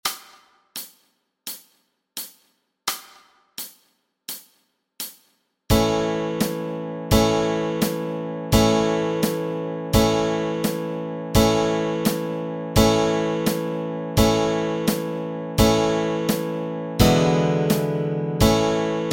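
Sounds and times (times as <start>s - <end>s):
easy guitar chords: 5.7s - 19.1s.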